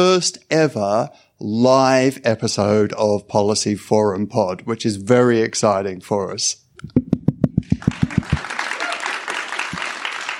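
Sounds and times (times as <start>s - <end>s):
speech: 0.0s - 7.1s
person clapping: 6.9s - 10.3s
audience applause: 7.7s - 10.3s.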